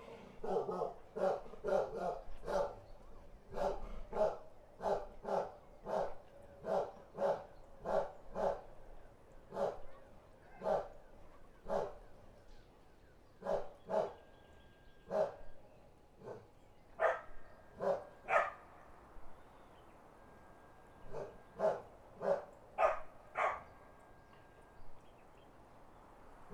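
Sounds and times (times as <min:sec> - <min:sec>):
birds: 0:00.0 - 0:26.5
country dogs barking: 0:00.4 - 0:02.8, 0:03.5 - 0:08.7, 0:09.5 - 0:09.9, 0:10.5 - 0:11.0, 0:11.6 - 0:12.0, 0:13.4 - 0:14.2, 0:15.1 - 0:15.4, 0:16.2 - 0:18.7, 0:21.1 - 0:23.8.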